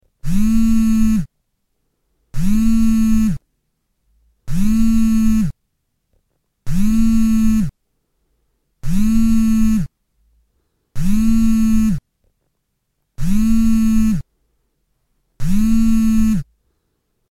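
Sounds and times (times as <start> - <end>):
vibration buzz: 0.1 - 1.3, 2.3 - 3.4, 4.5 - 5.6, 6.7 - 7.8, 8.8 - 9.9, 11.0 - 12.0, 13.2 - 14.3, 15.4 - 16.6.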